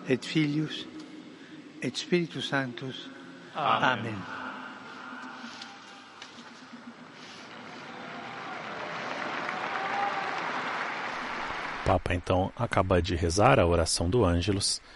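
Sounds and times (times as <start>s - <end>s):
speech: 0.1s - 0.9s, 1.8s - 4.4s, 11.9s - 14.9s
large crowd of faithful applauding the Pope: 7.5s - 13.1s.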